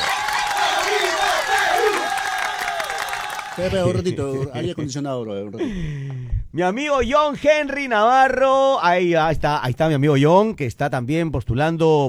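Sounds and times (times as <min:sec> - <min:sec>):
audience applause: 0:00.0 - 0:04.6
laughter: 0:03.2 - 0:06.0
speech: 0:03.6 - 0:12.0.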